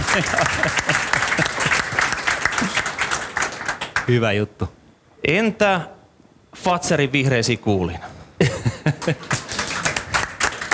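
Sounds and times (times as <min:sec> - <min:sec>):
laughter: 0:00.0 - 0:02.9, 0:08.4 - 0:09.9
audience applause: 0:00.0 - 0:04.2, 0:09.1 - 0:10.7
speech: 0:00.2 - 0:01.2, 0:04.1 - 0:06.0, 0:06.6 - 0:09.4.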